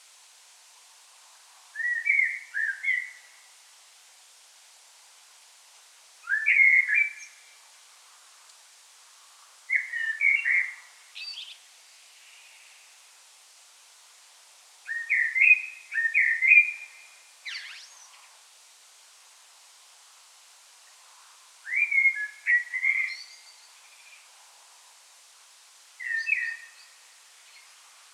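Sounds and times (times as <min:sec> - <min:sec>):
common blackbird song: 0:01.8 - 0:03.3, 0:06.2 - 0:07.4, 0:09.7 - 0:11.6, 0:14.9 - 0:17.9, 0:21.7 - 0:24.2, 0:26.0 - 0:27.0.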